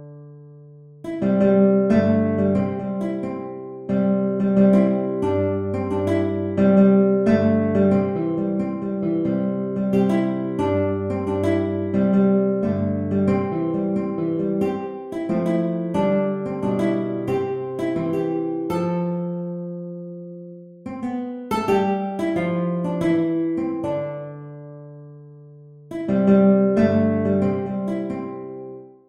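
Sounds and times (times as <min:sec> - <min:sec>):
guitar: 0:00.0 - 0:29.0.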